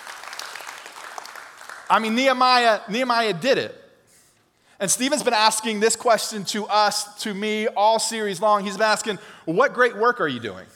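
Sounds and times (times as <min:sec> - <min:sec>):
audience hand clapping: 0:00.0 - 0:02.3
speech: 0:01.9 - 0:03.8, 0:04.8 - 0:10.7.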